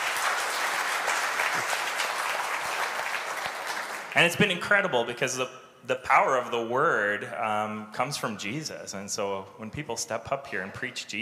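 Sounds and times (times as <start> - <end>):
applause: 0.0 - 4.5
speech: 4.2 - 11.1.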